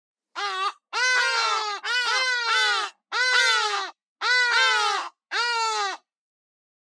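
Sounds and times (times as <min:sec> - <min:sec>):
Hadeda ibis harsh nasal honking calls: 0:00.4 - 0:06.0.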